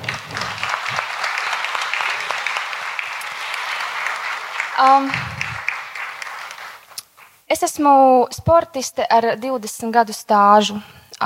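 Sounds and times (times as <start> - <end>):
applause: 0.0 - 7.4
speech: 4.8 - 5.4, 7.5 - 11.2.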